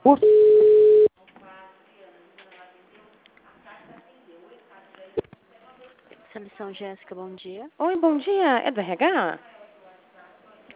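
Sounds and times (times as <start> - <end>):
speech: 0.0 - 0.4, 6.6 - 9.6
telephone line tone while a hospital call is transferred: 0.1 - 1.1.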